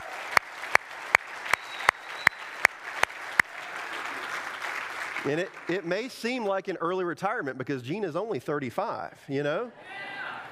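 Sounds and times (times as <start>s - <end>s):
audience applause: 0.0s - 6.5s
speech: 5.2s - 10.1s.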